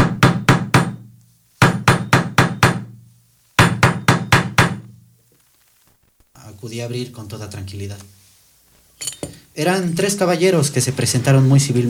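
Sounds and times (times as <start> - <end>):
knocking on a wooden door: 0.0 - 1.0, 1.6 - 3.0, 3.6 - 5.0
speech: 6.6 - 8.2, 9.6 - 11.8.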